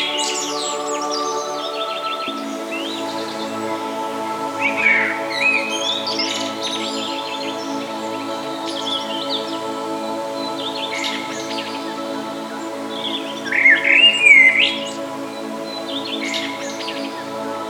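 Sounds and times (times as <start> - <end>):
birds singing: 0.0 - 17.6.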